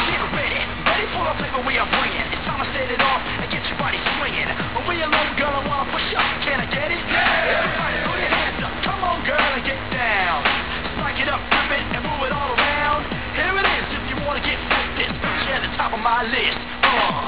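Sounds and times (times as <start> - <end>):
rap music: 0.0 - 17.2.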